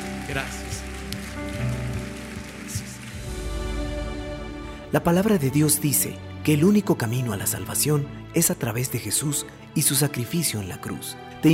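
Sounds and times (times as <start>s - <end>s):
loud applause: 0.0s - 3.9s
speech: 0.3s - 0.8s, 4.9s - 11.5s.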